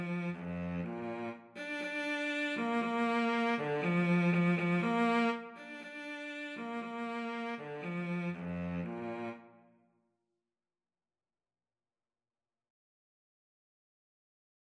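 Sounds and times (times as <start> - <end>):
clarinet and cello duet: 0.0 - 9.4.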